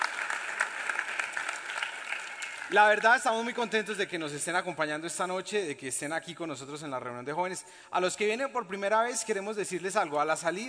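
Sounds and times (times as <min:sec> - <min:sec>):
audience applause: 0:00.0 - 0:03.3
speech: 0:02.7 - 0:10.6.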